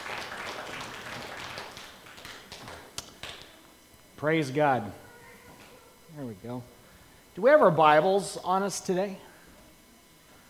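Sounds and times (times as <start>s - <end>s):
audience applause: 0.0s - 3.5s
speech: 4.2s - 5.0s, 6.2s - 6.8s, 7.4s - 9.3s.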